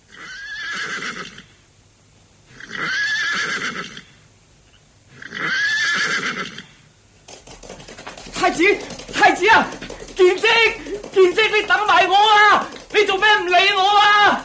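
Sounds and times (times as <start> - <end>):
horse neighing: 0.1 - 1.5, 2.5 - 4.2, 5.1 - 6.8
hooves scuffling as a horse sets off: 7.1 - 14.4
speech: 10.5 - 14.4.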